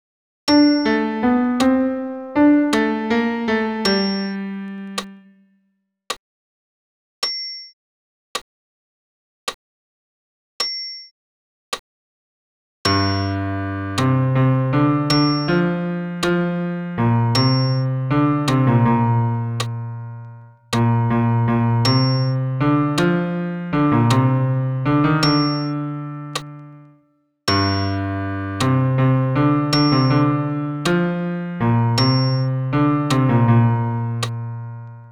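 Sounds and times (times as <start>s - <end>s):
solo piano bass part: 0.5s - 5.4s, 12.9s - 35.1s.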